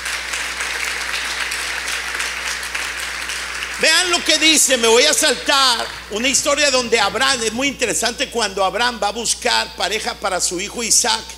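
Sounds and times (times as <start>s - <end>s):
audience applause: 0.0s - 7.7s
speech: 3.8s - 11.3s.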